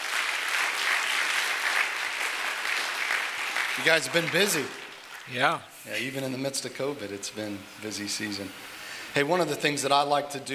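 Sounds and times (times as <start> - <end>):
audience applause: 0.0 - 5.4
speech: 3.8 - 10.5.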